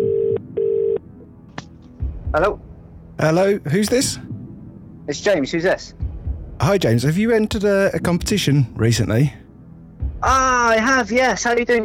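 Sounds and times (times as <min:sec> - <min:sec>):
telephone ringback tone on an outgoing call: 0:00.0 - 0:01.0
speech: 0:02.3 - 0:04.3, 0:05.1 - 0:06.0, 0:06.6 - 0:09.4, 0:10.2 - 0:11.8.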